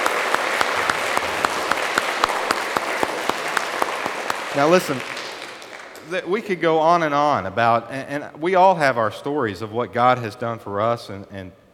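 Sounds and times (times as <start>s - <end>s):
large crowd applauding: 0.0s - 6.3s
speech: 4.6s - 5.1s, 6.1s - 11.6s.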